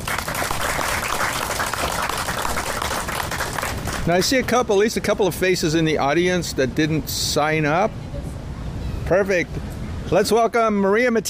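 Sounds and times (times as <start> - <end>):
audience applause for a performer on stage: 0.0 - 4.2
speech: 4.0 - 8.0, 9.1 - 11.2.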